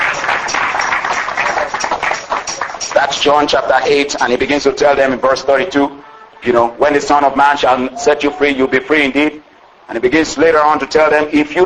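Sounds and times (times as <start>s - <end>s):
church congregation clapping hands in praise: 0.0s - 4.1s
speech: 3.0s - 11.6s.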